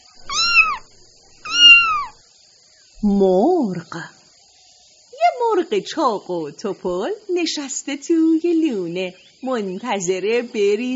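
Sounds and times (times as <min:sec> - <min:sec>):
cat meowing: 0:00.1 - 0:02.2
speech: 0:03.0 - 0:04.2, 0:05.5 - 0:10.9.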